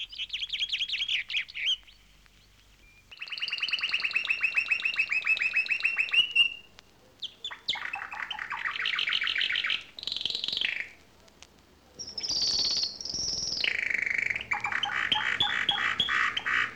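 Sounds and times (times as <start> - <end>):
bird giving varied chattering calls: 0.0 - 11.0, 11.9 - 16.7.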